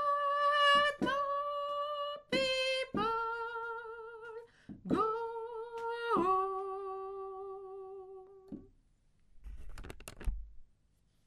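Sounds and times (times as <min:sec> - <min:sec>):
soprano singing: 0:00.0 - 0:08.7.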